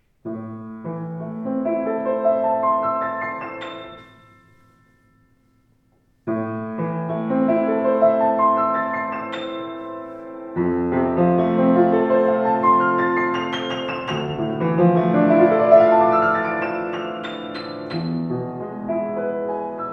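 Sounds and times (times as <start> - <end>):
piano: 0.0 - 19.9.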